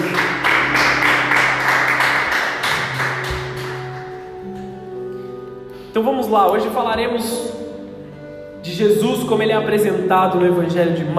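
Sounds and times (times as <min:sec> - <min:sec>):
applause: 0:00.0 - 0:04.2
speech: 0:06.0 - 0:07.6, 0:08.6 - 0:11.1.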